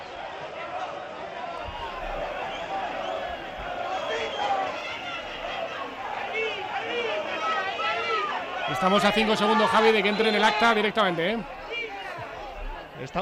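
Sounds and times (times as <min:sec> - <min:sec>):
stadium crowd shouting: 0:00.0 - 0:13.1
whistles: 0:01.6 - 0:05.4
speech: 0:08.8 - 0:11.6, 0:13.0 - 0:13.1.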